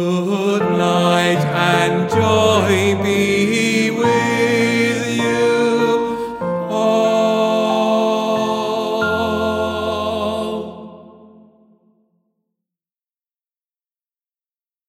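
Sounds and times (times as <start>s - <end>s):
baritone singing practice: 0.0s - 11.4s.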